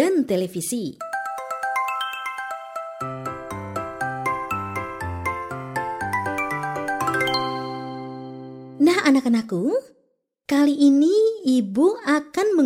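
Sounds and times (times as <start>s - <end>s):
speech: 0.1s - 1.1s, 9.1s - 9.9s, 10.5s - 12.6s
melodic telephone ringtone: 1.0s - 8.8s.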